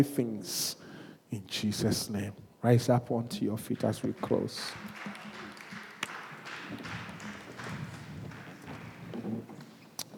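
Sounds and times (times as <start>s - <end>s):
speech: 0.0s - 5.2s
scattered halfhearted hand clapping from a group: 3.6s - 9.4s.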